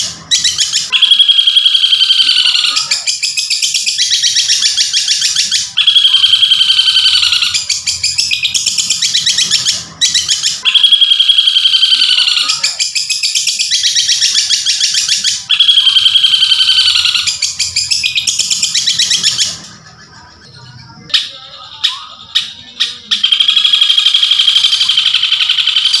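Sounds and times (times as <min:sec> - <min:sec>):
long-tailed shrike song: 0:00.0 - 0:25.9.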